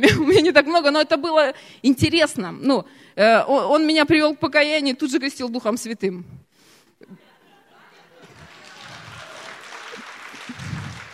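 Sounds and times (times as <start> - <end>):
speech: 0.0 - 6.4
laughter: 7.0 - 11.1
audience applause: 8.2 - 11.1.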